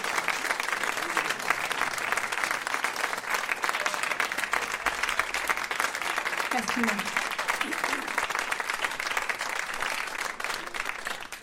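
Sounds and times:
audience applause: 0.0 - 11.4
speech: 6.6 - 8.1.

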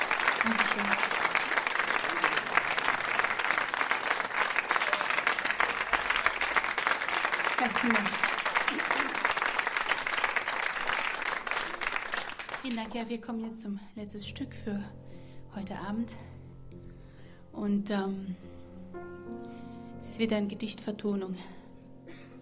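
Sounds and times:
audience applause: 0.0 - 12.8
speech: 0.4 - 1.0, 7.6 - 9.3, 12.6 - 15.0, 15.6 - 16.3, 17.6 - 18.5, 20.2 - 21.6.

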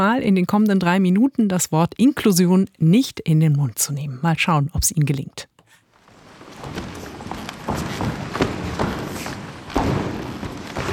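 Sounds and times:
speech: 0.0 - 5.5
ensemble stomping on creaking wooden floor of the Aula in Sulzbach: 6.0 - 10.9.

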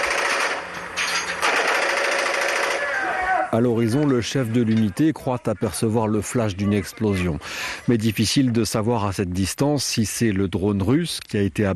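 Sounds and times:
machine gun firing: 0.0 - 0.7, 1.4 - 2.9
speech: 3.5 - 11.7.

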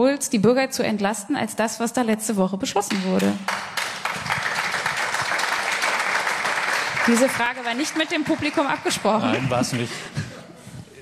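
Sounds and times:
speech: 0.0 - 4.0, 7.1 - 10.2
audience applause: 3.4 - 10.2
laughter: 8.5 - 11.0.

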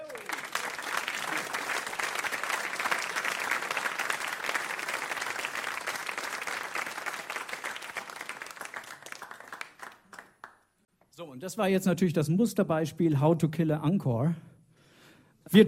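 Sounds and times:
large audience applause: 0.0 - 10.6
speech: 11.4 - 14.5.

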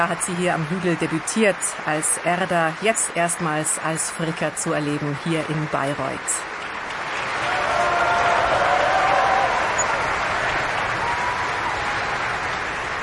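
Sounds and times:
large opera audience applauding after a performance: 0.0 - 3.7, 6.4 - 13.0
speech: 0.0 - 6.6.

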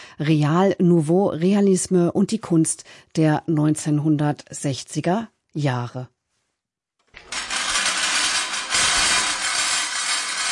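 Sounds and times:
speech: 0.2 - 6.2
scrap-metal kinetic sculpture clattering as it starts up: 7.2 - 10.5.

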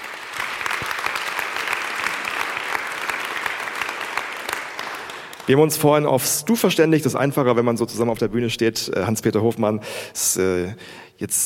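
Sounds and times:
audience applause: 0.0 - 5.7
speech: 5.5 - 11.4.

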